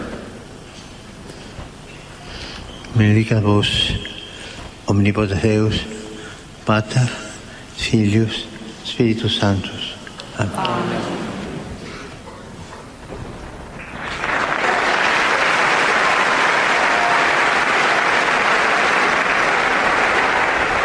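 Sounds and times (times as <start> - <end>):
speech: 3.0 - 4.1, 4.9 - 6.0, 6.7 - 7.2, 7.8 - 9.8, 10.4 - 11.3
pilgrims applauding in an audience hall: 13.7 - 20.8.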